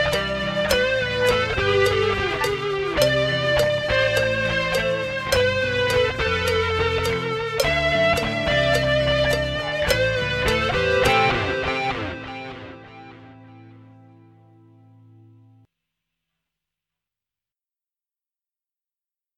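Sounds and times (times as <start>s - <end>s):
drum kit backing: 0.0s - 12.6s.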